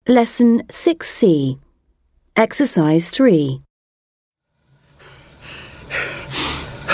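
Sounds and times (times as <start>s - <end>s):
speech: 0.1s - 1.6s, 2.4s - 3.6s
heavy panting after hard exertion: 4.9s - 6.9s.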